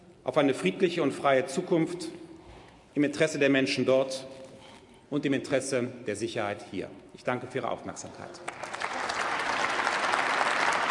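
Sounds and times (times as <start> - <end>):
speech: 0.2 - 2.2, 3.0 - 4.4, 5.1 - 8.7
applause from FDP and CDU benches in a parliament chamber after a speech on Afghanistan: 8.3 - 10.8.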